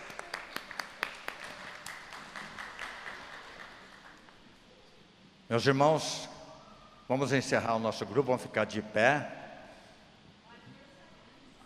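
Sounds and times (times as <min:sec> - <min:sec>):
group applause: 0:00.0 - 0:04.4
speech: 0:05.5 - 0:06.3, 0:07.1 - 0:09.4.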